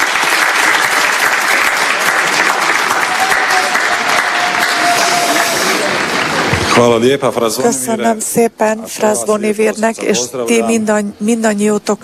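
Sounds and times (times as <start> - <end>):
audience applause: 0.0 - 7.1
speech: 6.8 - 12.0.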